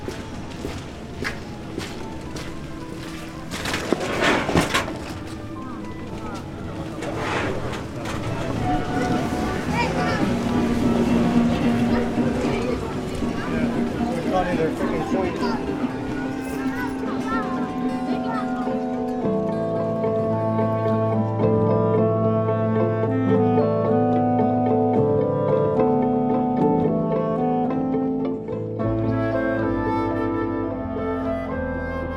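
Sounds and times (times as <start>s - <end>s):
footsteps: 0.0s - 19.5s
crowd chatter on busy pedestrian street: 0.0s - 32.1s
scattered sharp knocks and clatters: 3.6s - 8.6s.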